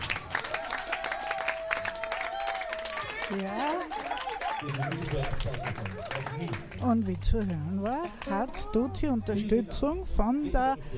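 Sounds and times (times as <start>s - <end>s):
crowd applauding: 0.0s - 8.7s
speech: 3.3s - 4.0s, 4.6s - 10.9s.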